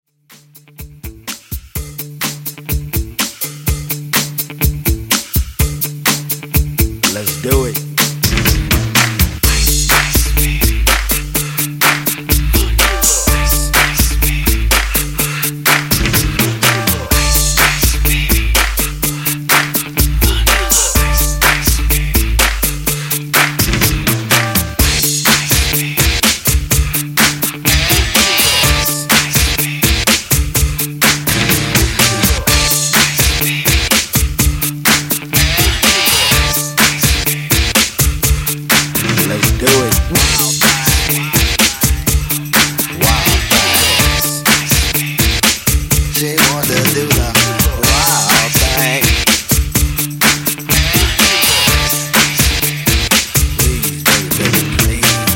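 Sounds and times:
party mashup music: 0.2 - 55.3.

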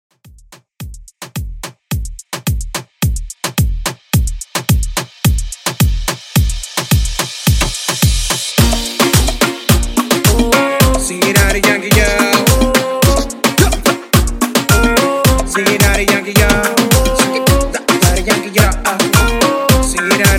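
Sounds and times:
reggaeton beat at 108 BPM: 0.1 - 20.3.

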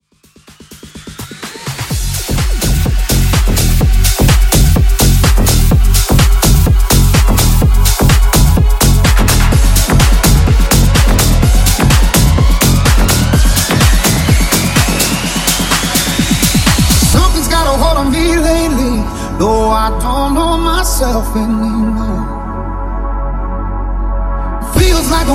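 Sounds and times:
music mashup: 0.0 - 25.3.

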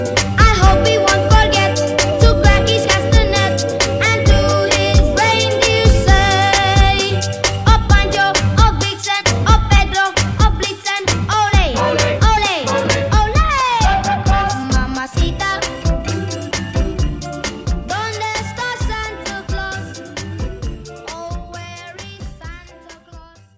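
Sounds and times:
Christmas drum beat: 0.0 - 17.9.

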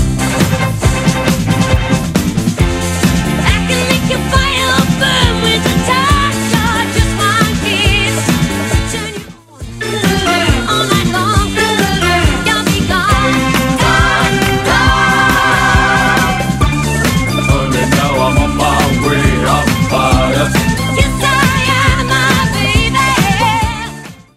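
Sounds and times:
music loop: 0.0 - 24.0.

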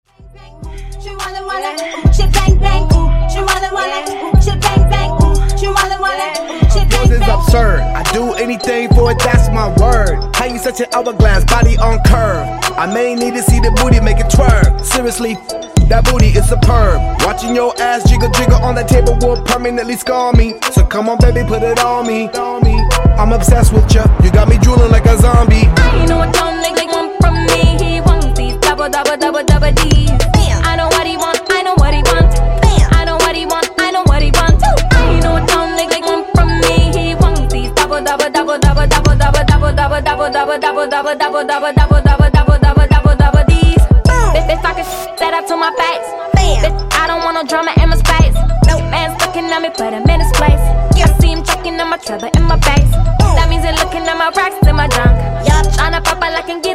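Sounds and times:
a cappella intro vocals: 0.1 - 56.7.

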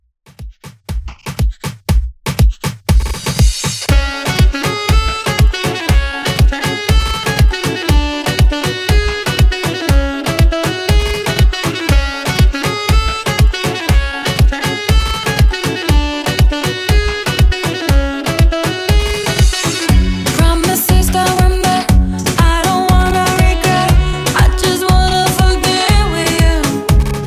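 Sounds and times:
moombahton beat at 120 BPM: 0.3 - 27.2.

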